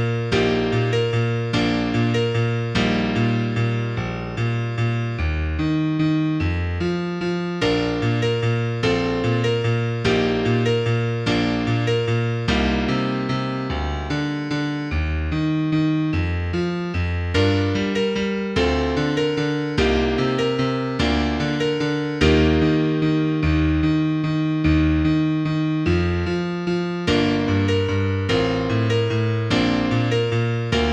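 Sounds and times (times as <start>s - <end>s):
piano piece: 0.0s - 30.9s.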